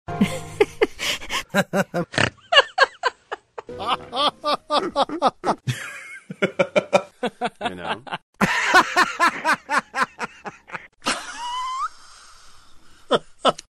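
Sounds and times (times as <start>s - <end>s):
laughing: 0.2s - 10.9s.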